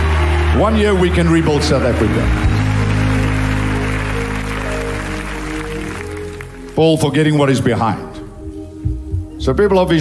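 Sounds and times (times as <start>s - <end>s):
crowd clapping: 0.0s - 7.2s
low sustained musical tones: 0.0s - 9.9s
speech: 0.6s - 2.5s, 6.8s - 8.1s, 9.4s - 9.9s.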